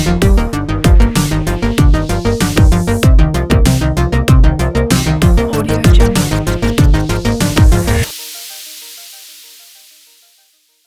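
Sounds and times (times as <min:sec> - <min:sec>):
computer game music: 0:00.2 - 0:08.1.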